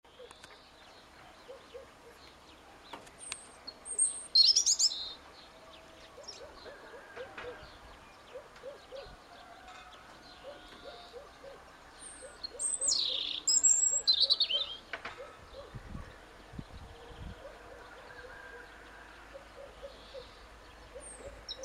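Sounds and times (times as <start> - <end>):
European robin singing: 0.1 - 21.6
low repeated hooting from another bird: 6.2 - 9.2, 10.4 - 15.8, 17.3 - 21.6.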